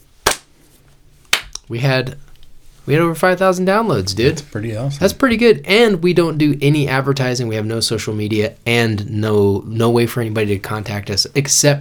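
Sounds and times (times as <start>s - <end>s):
slow hand claps: 0.2s - 0.6s, 1.3s - 1.7s
speech: 1.7s - 2.3s, 2.9s - 11.7s.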